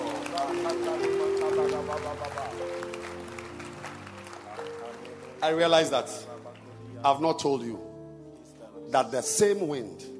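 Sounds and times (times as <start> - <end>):
audience clapping hands: 0.0 - 7.2
speech: 5.4 - 6.3, 7.0 - 7.9, 8.9 - 10.1.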